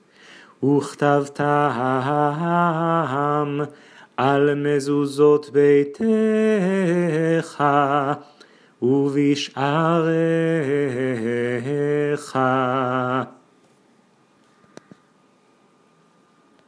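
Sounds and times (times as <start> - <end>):
trope cantillation chanting: 0.3 - 13.4.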